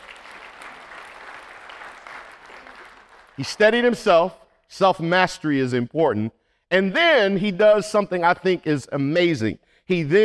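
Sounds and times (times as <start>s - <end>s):
hand clapping: 0.0s - 3.6s
speech: 3.4s - 10.2s.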